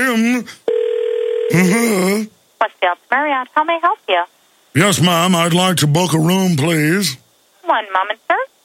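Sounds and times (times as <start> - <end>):
speech: 0.1 - 0.7, 1.5 - 8.5
telephone dial tone: 0.7 - 1.5
telephone ringing: 0.7 - 1.8.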